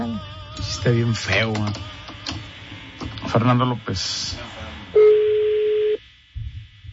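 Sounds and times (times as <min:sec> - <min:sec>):
speech: 0:00.2 - 0:02.0, 0:03.3 - 0:04.4
telephone ringing on the line: 0:05.0 - 0:06.0.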